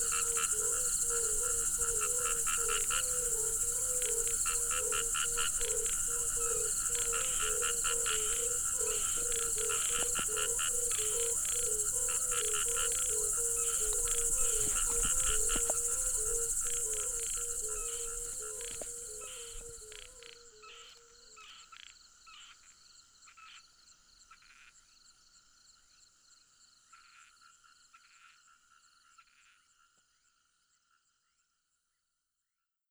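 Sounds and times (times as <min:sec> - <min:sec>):
crickets trilling: 0:00.0 - 0:21.4
frogs calling: 0:00.0 - 0:22.7.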